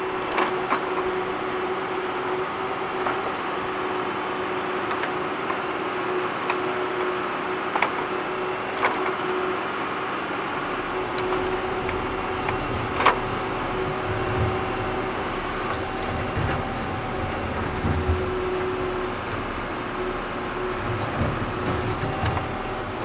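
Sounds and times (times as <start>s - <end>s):
tractor digging: 0.0s - 23.0s.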